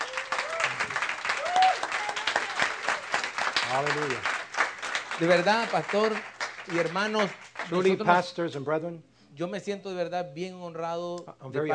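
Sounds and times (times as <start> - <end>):
Iglesia Cristiana Sembrando la Semilla congregation clapping in church: 0.0 - 8.2
speech: 3.7 - 4.4, 5.2 - 11.7.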